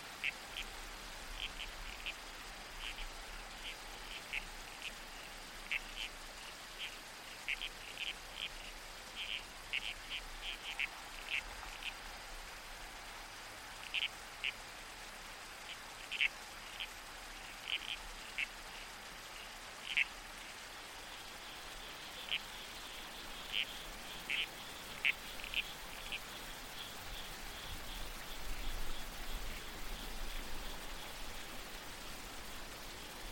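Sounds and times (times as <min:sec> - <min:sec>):
creek water rushing: 0:00.0 - 0:33.3
faint insect drone: 0:00.0 - 0:33.3
wind: 0:00.0 - 0:33.3
red-crowned toadlet grating calls: 0:06.8 - 0:12.0, 0:13.8 - 0:14.6, 0:15.7 - 0:16.9, 0:17.6 - 0:18.8, 0:19.8 - 0:20.1, 0:21.0 - 0:26.9.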